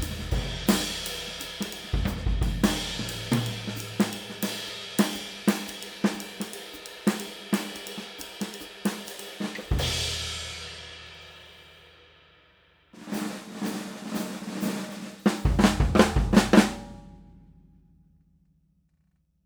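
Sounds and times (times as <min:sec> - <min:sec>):
Gretsch USA 6.5x14 satin drum: 0:00.0 - 0:10.7, 0:13.0 - 0:17.4.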